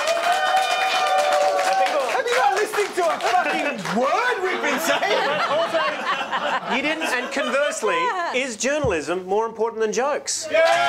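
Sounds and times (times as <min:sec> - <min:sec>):
audience cheers and whoops: 0:00.0 - 0:02.3, 0:10.5 - 0:10.8
audience applauding: 0:00.0 - 0:05.2
laughter: 0:02.2 - 0:08.5
speech: 0:06.7 - 0:10.8.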